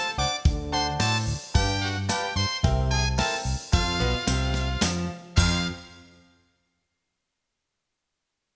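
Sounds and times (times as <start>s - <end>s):
brass section playing tutti: 0.0s - 6.4s.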